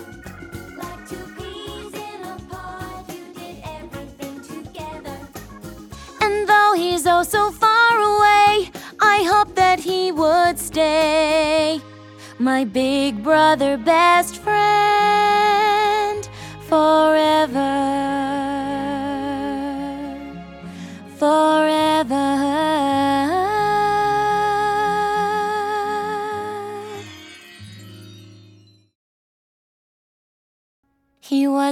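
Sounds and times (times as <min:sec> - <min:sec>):
a cappella singing: 0:00.8 - 0:05.4, 0:06.2 - 0:11.8, 0:12.4 - 0:20.2, 0:21.2 - 0:27.0.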